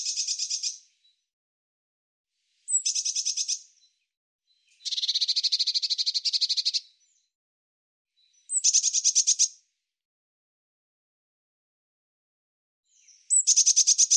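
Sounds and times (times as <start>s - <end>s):
bird singing high thin buzzy phrases: 0.0s - 1.1s, 2.7s - 7.3s, 8.2s - 9.6s, 12.9s - 14.1s.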